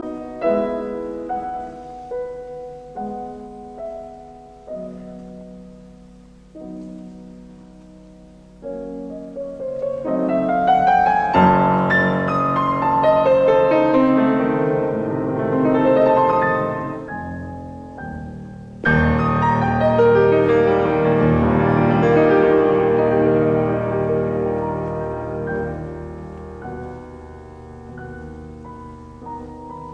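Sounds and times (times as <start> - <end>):
piano sonata in E major played vivace: 0.0 - 29.9.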